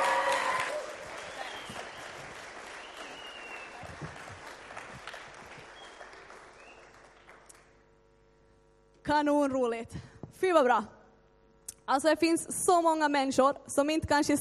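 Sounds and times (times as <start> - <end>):
audience applause: 0.0 - 7.8
speech: 9.1 - 11.0, 11.9 - 14.3.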